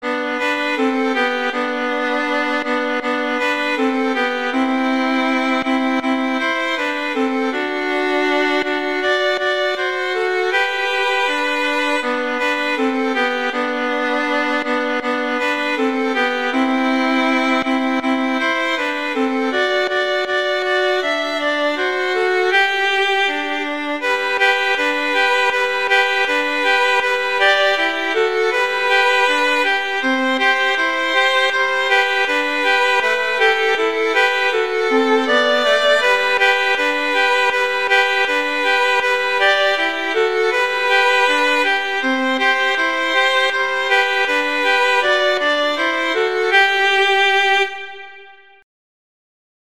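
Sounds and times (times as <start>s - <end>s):
violin duet: 0.0s - 48.6s.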